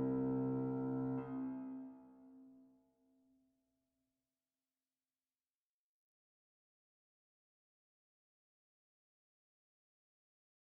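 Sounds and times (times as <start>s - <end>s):
piano: 0.0s - 2.4s.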